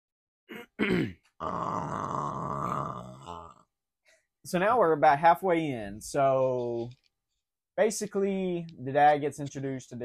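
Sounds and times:
burp: 0:00.5 - 0:03.7
speech: 0:00.8 - 0:02.6, 0:04.4 - 0:07.0, 0:07.8 - 0:10.0.

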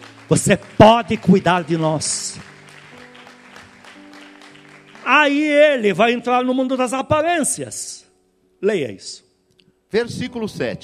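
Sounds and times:
audience applause: 0:00.0 - 0:05.6
speech: 0:00.3 - 0:02.5, 0:05.1 - 0:07.9, 0:08.6 - 0:09.2, 0:09.9 - 0:10.8.

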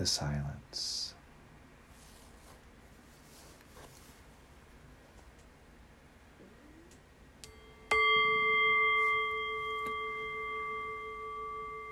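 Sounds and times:
speech: 0:00.0 - 0:01.2
meditation bell ringing: 0:07.5 - 0:11.9.

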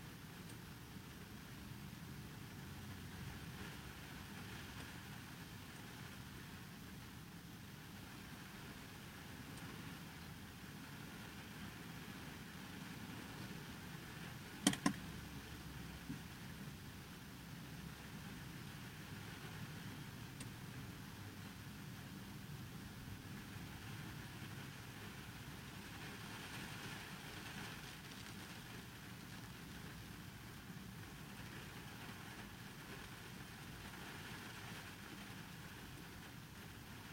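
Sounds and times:
rain on a car with nobody inside: 0:00.0 - 0:37.1
sharp click: 0:14.6 - 0:15.0.

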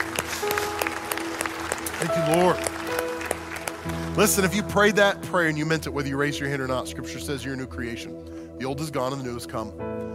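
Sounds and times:
audience applause: 0:00.0 - 0:04.9
speech: 0:02.0 - 0:02.7, 0:04.2 - 0:10.1.

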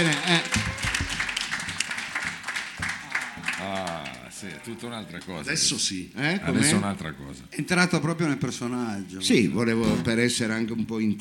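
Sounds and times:
applause: 0:00.0 - 0:05.4
speech: 0:04.4 - 0:11.1.

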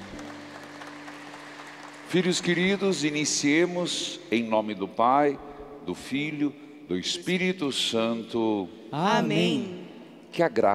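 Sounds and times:
audience applause: 0:00.0 - 0:03.6
speech: 0:02.1 - 0:10.7.

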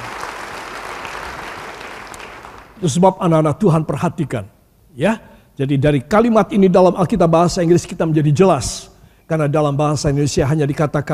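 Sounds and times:
audience applauding: 0:00.0 - 0:02.8
speech: 0:02.8 - 0:11.1.

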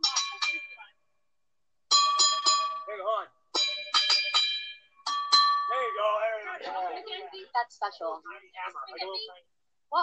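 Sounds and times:
small bells ringing at different pitches: 0:00.0 - 0:00.9, 0:01.9 - 0:06.8
speech: 0:07.6 - 0:10.0.

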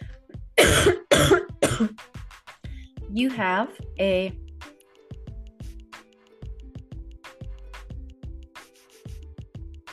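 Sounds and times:
harsh loud coughing fit: 0:00.6 - 0:02.0
speech: 0:03.2 - 0:04.4.

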